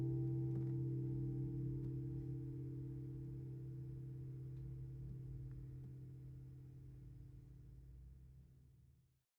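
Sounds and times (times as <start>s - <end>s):
guitars: 0.0s - 5.0s.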